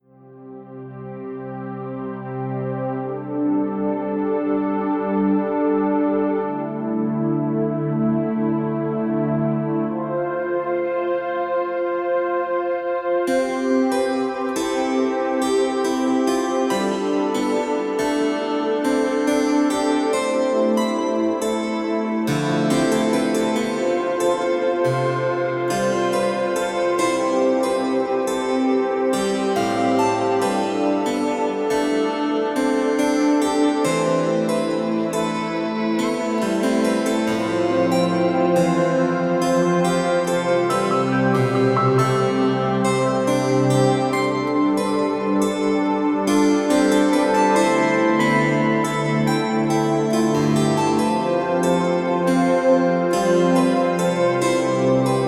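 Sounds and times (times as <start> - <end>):
harpsichord: 0.4 - 55.2.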